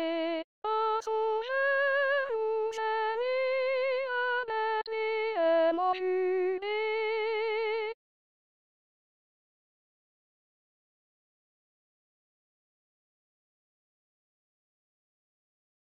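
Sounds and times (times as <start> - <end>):
soprano singing: 0.0 - 8.0.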